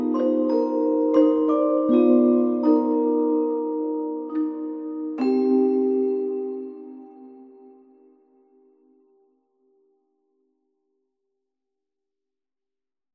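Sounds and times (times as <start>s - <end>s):
cute spooky Halloween song: 0.0s - 8.8s.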